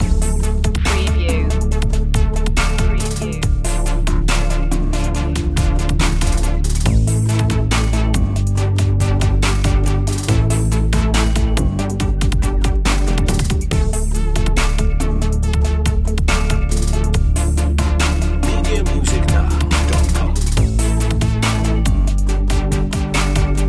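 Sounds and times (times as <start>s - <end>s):
hip-hop loop: 0.0s - 23.6s.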